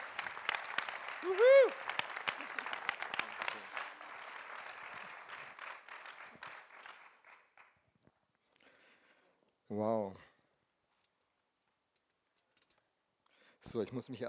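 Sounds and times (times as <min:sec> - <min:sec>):
audience applause welcoming speaker: 0:00.0 - 0:07.8
person whooping: 0:01.1 - 0:02.7
speech: 0:01.2 - 0:01.8, 0:09.8 - 0:10.3, 0:13.7 - 0:14.2.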